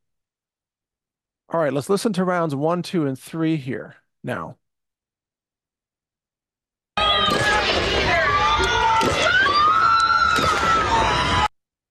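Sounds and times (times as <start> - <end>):
speech: 1.5 - 4.6
crowd screaming: 7.0 - 11.5.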